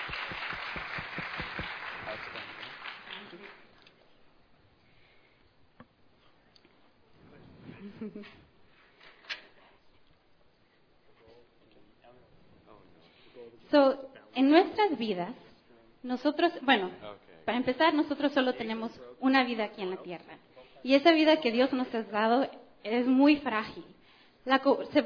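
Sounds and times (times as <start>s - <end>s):
audience clapping: 0.0s - 3.9s
speech: 8.0s - 8.5s, 13.7s - 15.4s, 16.0s - 25.0s.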